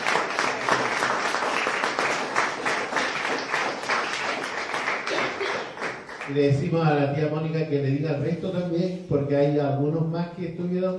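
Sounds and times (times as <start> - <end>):
audience applause: 0.0 - 6.3
speech: 6.3 - 10.9.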